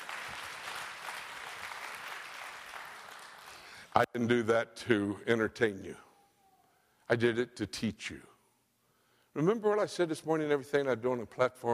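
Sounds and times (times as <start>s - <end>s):
audience applause: 0.0s - 3.7s
speech: 4.0s - 6.1s, 7.1s - 8.3s, 9.4s - 11.7s.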